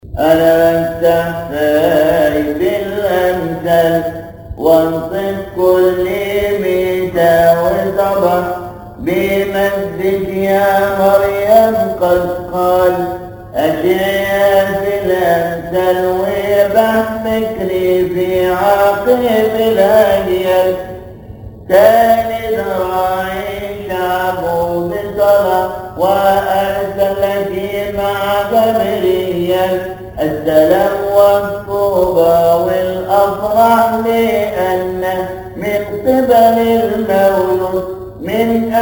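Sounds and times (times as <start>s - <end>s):
Arabic praise song: 0.0s - 38.8s.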